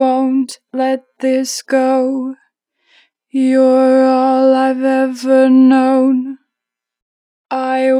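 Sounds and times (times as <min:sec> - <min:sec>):
vocals with natural vibrato: 0:00.0 - 0:02.4, 0:03.4 - 0:06.5, 0:07.5 - 0:07.9.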